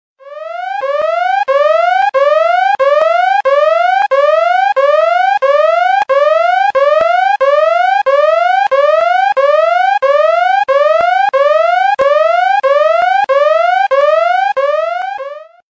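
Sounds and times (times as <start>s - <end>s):
alarm: 0.2s - 15.6s.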